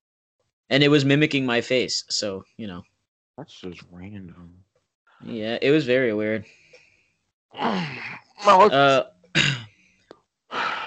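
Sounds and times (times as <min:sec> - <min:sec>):
speech: 0:00.7 - 0:04.6, 0:05.2 - 0:06.6, 0:07.5 - 0:09.6
person clearing throat: 0:09.3 - 0:09.7.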